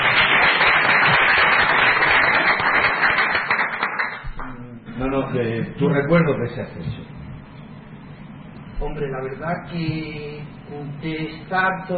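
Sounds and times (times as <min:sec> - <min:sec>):
audience applause: 0:00.0 - 0:04.2
speech: 0:05.3 - 0:07.2, 0:08.8 - 0:11.9.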